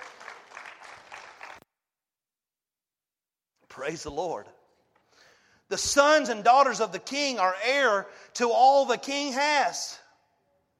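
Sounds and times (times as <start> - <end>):
audience clapping: 0.0 - 1.6
speech: 3.8 - 4.6, 5.7 - 10.0.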